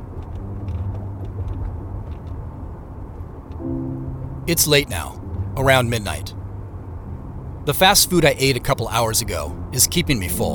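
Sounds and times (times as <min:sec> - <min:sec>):
faint ticks: 0:00.0 - 0:02.4
car cruising along a highway: 0:00.0 - 0:10.5
speech: 0:04.5 - 0:06.4, 0:07.6 - 0:10.5.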